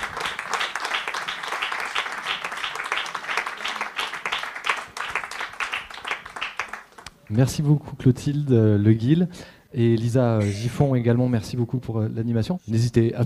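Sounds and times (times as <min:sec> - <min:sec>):
audience applause: 0:00.0 - 0:07.1
speech: 0:07.3 - 0:13.2.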